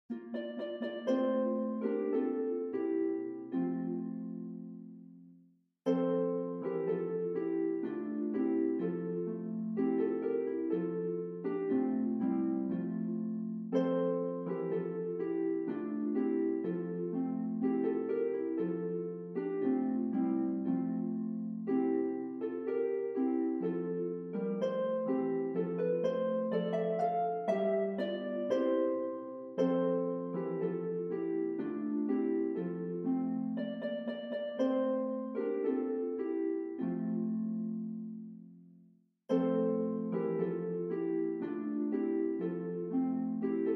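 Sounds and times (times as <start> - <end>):
harp playing a Christmas carol: 0.0 - 5.2, 5.9 - 38.6, 39.3 - 43.7.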